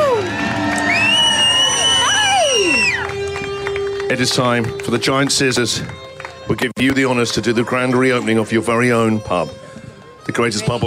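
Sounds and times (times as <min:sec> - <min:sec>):
applause: 0:00.0 - 0:08.1
speech: 0:04.1 - 0:09.6, 0:10.3 - 0:10.8.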